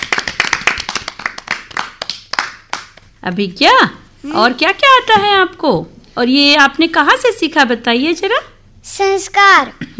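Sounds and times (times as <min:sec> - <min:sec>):
audience clapping: 0:00.0 - 0:03.1
speech: 0:03.2 - 0:09.9.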